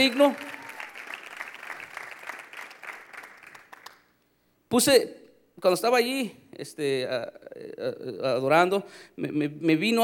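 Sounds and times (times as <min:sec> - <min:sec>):
speech: 0:00.0 - 0:00.5, 0:04.7 - 0:10.0
church congregation applauding: 0:00.0 - 0:04.2.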